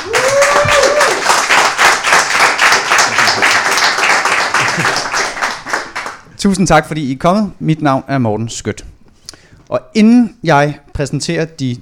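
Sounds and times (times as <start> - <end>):
person whooping: 0.0 - 1.4
crowd applauding: 0.0 - 6.3
speech: 6.4 - 8.9, 9.7 - 11.8.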